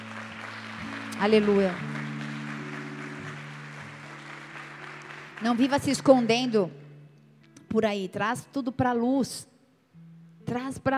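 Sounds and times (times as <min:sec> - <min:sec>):
audience applause: 0:00.0 - 0:06.5
speech: 0:01.2 - 0:02.0, 0:05.4 - 0:06.8, 0:07.7 - 0:09.5, 0:10.5 - 0:10.9.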